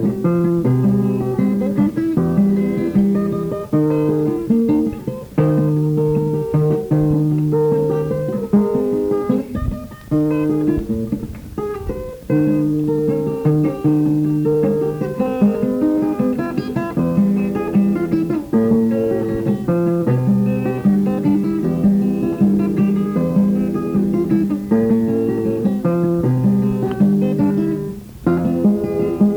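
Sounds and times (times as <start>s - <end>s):
guitar: 0.0s - 29.3s.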